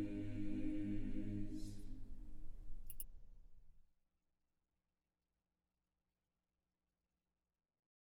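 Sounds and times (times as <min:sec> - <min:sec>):
soprano choir singing: 0:00.0 - 0:02.8.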